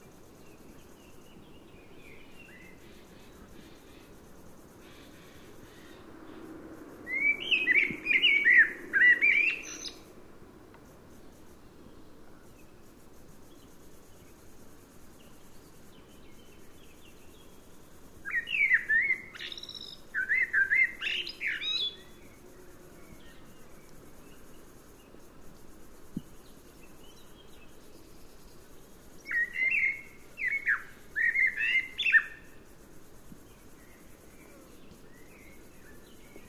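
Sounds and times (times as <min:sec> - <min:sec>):
common blackbird fluted warbling song: 0:07.1 - 0:10.0, 0:18.3 - 0:22.2, 0:29.3 - 0:32.4.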